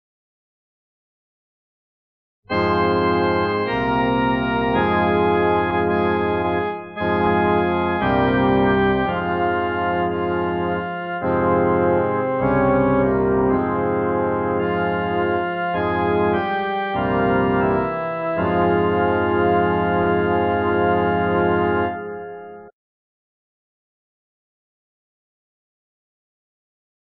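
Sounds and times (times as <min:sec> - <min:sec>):
solo music: 0:02.5 - 0:22.7.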